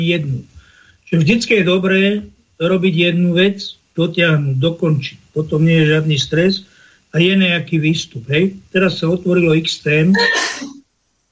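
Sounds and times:
speech: 0.0 - 10.8
person sneezing: 10.1 - 10.8.

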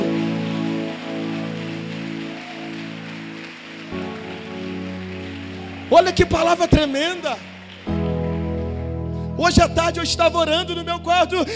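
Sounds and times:
audience applause: 0.0 - 9.0
speech: 5.9 - 7.5, 9.4 - 11.5.

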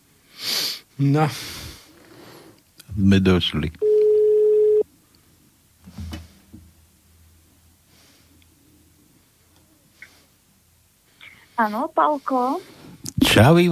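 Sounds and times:
speech: 1.0 - 1.6, 2.9 - 3.9, 11.6 - 13.7
telephone ring tone: 3.8 - 4.8.

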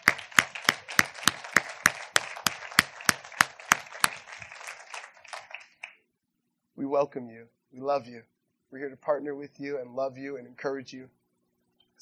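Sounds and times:
audience applauding: 0.0 - 6.0
speech: 6.8 - 11.2.

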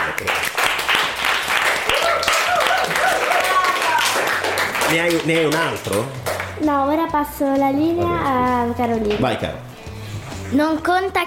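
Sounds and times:
applause: 0.0 - 6.6
speech: 4.9 - 9.7, 10.5 - 11.2.

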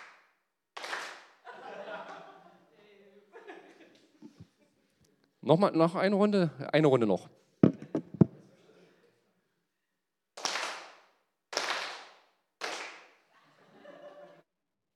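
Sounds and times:
audience clapping hands in rhythm: 0.0 - 1.4, 10.4 - 13.2
laughter: 1.4 - 4.8, 7.8 - 9.2, 13.3 - 14.4
speech: 5.4 - 7.4.

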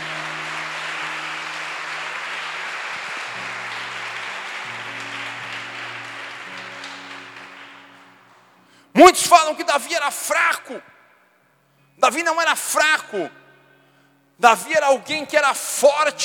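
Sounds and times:
audience applause: 0.0 - 8.6
speech: 9.0 - 10.9, 12.0 - 13.4, 14.4 - 16.2.

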